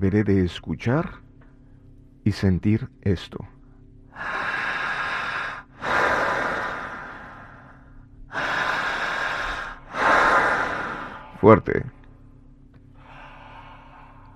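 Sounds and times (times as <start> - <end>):
speech: 0.0 - 1.2, 2.2 - 3.6, 11.4 - 12.0
forceful deep inhalations: 4.1 - 11.6, 12.9 - 14.3.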